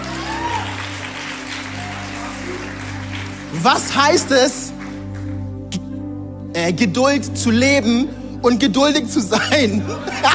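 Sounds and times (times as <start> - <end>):
crowd applauding: 0.0 - 5.5
speech: 3.5 - 4.7, 6.6 - 10.3
laughter: 9.4 - 10.3.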